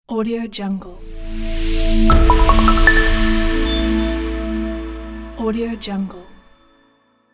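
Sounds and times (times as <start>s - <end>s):
tv logo jingle: 0.9s - 6.5s.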